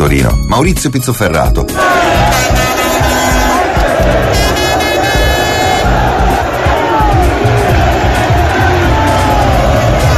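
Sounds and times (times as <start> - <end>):
speech: 0.1 - 2.6
horns honking: 1.8 - 9.2
crowd of about 300,000 celebrating Inter's Italian league title in Milan's streets: 1.8 - 10.1.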